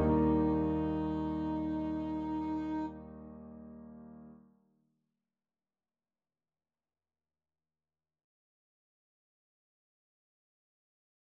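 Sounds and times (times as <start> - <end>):
alto saxophone: 0.0 - 3.0.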